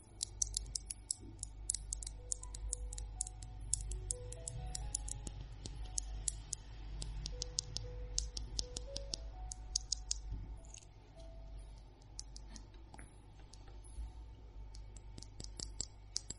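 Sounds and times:
long fingernails tapping on objects: 0.0 - 10.9, 14.8 - 16.3
steady low hum: 0.0 - 16.3.

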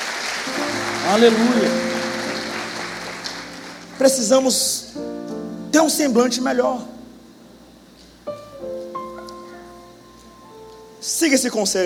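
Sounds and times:
audience applauding: 0.0 - 4.4
speech: 1.1 - 1.9, 4.0 - 7.0, 11.2 - 11.8.

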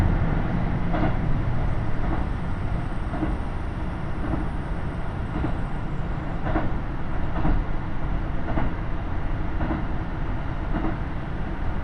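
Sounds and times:
rail clacks: 0.0 - 3.5, 4.1 - 4.6, 5.2 - 5.7, 6.4 - 7.7, 8.4 - 8.8, 9.5 - 11.1
KiHa 75 diesel railcar rumbling on the Taita Line: 0.0 - 11.8.

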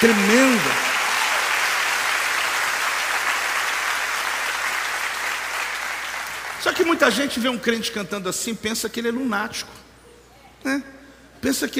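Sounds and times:
speech: 0.0 - 0.9, 6.7 - 9.9, 10.6 - 11.7
audience applause: 0.0 - 6.9.

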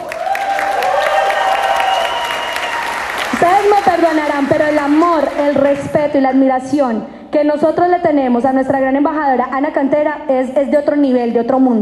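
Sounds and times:
audience applause: 0.0 - 6.1
speech: 3.4 - 11.8.

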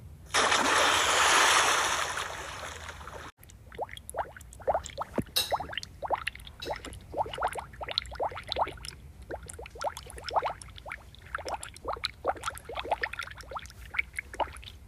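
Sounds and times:
splash from jumping into a deep swimming pool: 0.3 - 3.3
water bubbling and gurgling: 2.9 - 14.8.

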